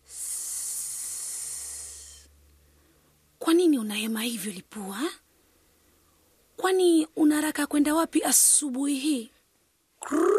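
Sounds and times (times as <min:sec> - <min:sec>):
venomous snake hissing from a bush beneath a baobab tree: 0:00.0 - 0:02.4
speech: 0:03.7 - 0:05.2, 0:06.7 - 0:09.4, 0:10.0 - 0:10.3.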